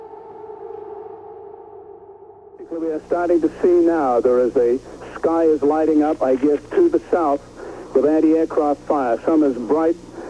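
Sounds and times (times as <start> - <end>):
air raid siren: 0.0 - 2.8
speech: 2.6 - 10.1.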